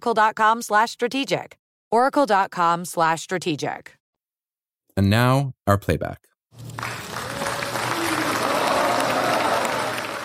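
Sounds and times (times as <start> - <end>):
speech: 0.0 - 4.0, 5.0 - 7.0
crowd clapping at US-Taliban peace agreement signing in Doha, Qatar: 6.6 - 10.2.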